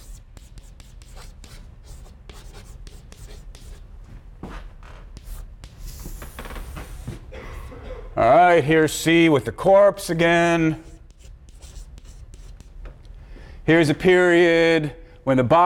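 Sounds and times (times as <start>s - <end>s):
scratchy strokes of a diagram being drawn during a lecture: 0.0s - 3.9s, 5.1s - 6.7s, 10.4s - 12.8s
speech: 8.2s - 10.9s, 13.7s - 15.6s.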